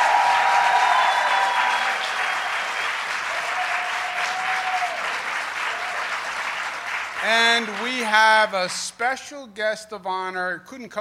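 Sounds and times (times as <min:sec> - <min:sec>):
applause: 0:00.0 - 0:08.8
speech: 0:07.2 - 0:10.9.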